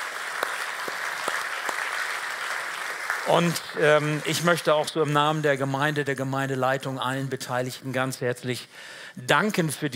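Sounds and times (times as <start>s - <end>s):
applause: 0.0s - 4.9s
speech: 3.2s - 9.9s.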